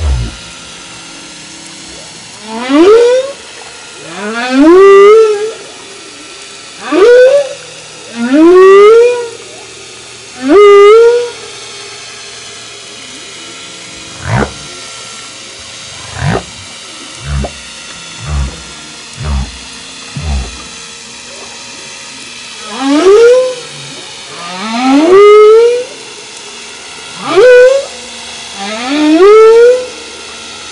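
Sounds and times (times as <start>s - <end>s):
humpback whale: 0.0s - 30.6s.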